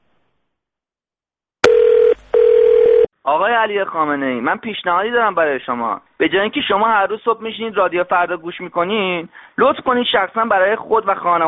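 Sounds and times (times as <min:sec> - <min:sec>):
telephone line click: 0:01.6 - 0:03.0
electronic ringback or dial tone: 0:01.6 - 0:03.1
speech: 0:03.3 - 0:11.4.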